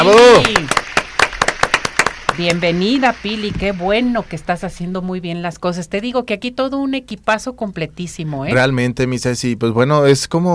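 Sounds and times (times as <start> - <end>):
speech: 0.0 - 0.6, 2.4 - 10.5
applause: 0.0 - 3.9.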